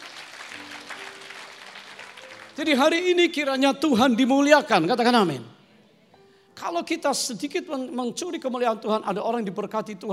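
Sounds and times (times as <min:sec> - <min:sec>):
audience applause: 0:00.0 - 0:03.1
speech: 0:02.6 - 0:05.6, 0:06.6 - 0:10.1.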